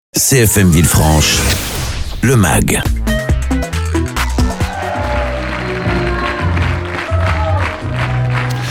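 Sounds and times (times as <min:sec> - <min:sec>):
speech: 0:00.2 - 0:03.7
upbeat music with punchy bass and melody: 0:00.2 - 0:08.6
crowd applause: 0:04.2 - 0:08.6.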